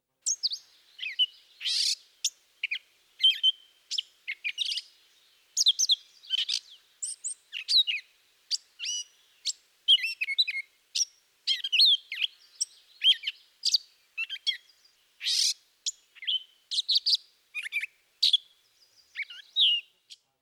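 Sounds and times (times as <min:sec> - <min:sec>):
catbird song: 0:00.2 - 0:20.3.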